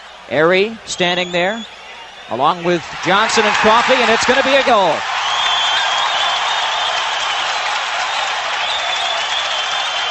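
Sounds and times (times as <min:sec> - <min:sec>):
speech: 0:00.3 - 0:05.1
hockey arena crowd cheering and clapping: 0:02.7 - 0:10.0.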